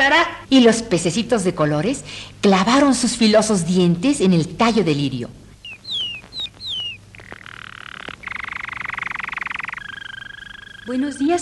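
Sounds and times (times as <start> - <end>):
speech: 0.0 - 5.4, 10.9 - 11.4
toad croaking: 5.6 - 11.4.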